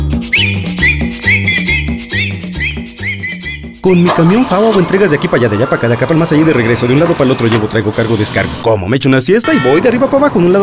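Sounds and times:
people whistling a tune: 0.2 - 4.0
speech: 3.9 - 10.6.

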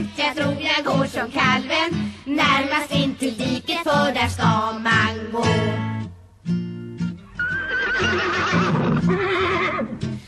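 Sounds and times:
speech: 0.0 - 5.6
horse walking with its foal along a country road whinnying: 7.3 - 10.2
horse snorting: 7.7 - 10.0.

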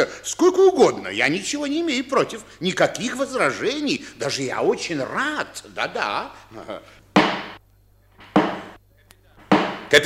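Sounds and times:
speech: 0.0 - 7.0
chairman's wooden gavel knocking: 7.2 - 7.6, 8.2 - 8.8, 9.4 - 10.0.

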